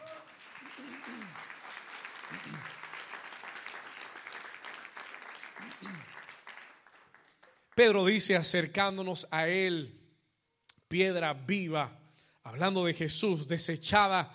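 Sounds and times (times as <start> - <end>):
audience applause: 0.0 - 7.7
speech: 7.8 - 10.0, 10.9 - 14.3.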